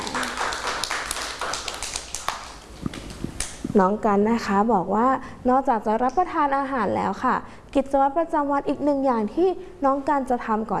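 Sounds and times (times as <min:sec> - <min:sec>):
children clapping hands: 0:00.0 - 0:03.6
speech: 0:03.8 - 0:10.7.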